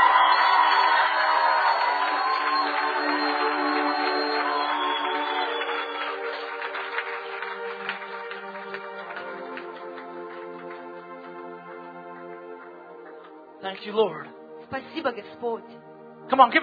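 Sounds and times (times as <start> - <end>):
audience shouting praise and cheering: 0.0 - 6.3
speech: 13.8 - 16.6.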